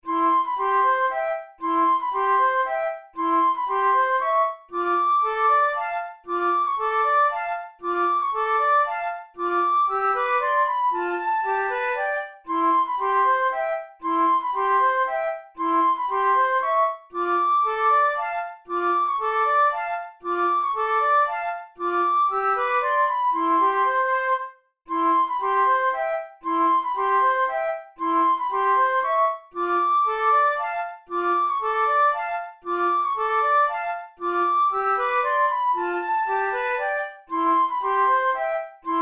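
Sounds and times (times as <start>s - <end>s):
flute method exercise: 0.0s - 39.0s.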